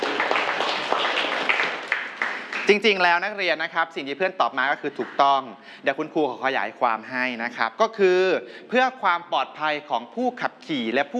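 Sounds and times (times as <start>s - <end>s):
students in a classroom clapping for a classmate: 0.0s - 3.1s
speech: 2.7s - 11.1s.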